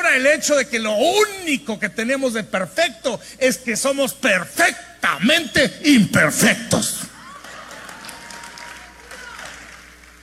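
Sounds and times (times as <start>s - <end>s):
speech: 0.1s - 7.0s
audience applause: 7.2s - 10.2s.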